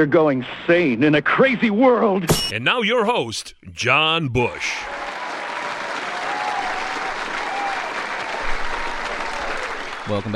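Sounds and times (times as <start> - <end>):
speech: 0.0 - 5.0, 10.1 - 10.3
audience applause: 4.4 - 10.3.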